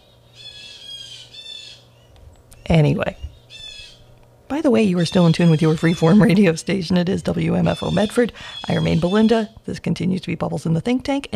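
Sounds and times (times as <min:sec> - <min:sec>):
birds squawking outside in the afternoon: 0:00.0 - 0:04.2, 0:04.8 - 0:06.6, 0:07.4 - 0:09.6
faint steady low hum: 0:00.0 - 0:11.3
speech: 0:02.7 - 0:03.3, 0:04.5 - 0:11.3.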